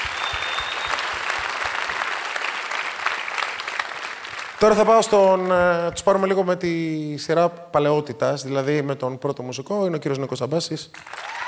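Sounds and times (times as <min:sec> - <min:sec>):
audience applause: 0:00.0 - 0:05.0, 0:11.0 - 0:11.4
speech: 0:04.6 - 0:11.3.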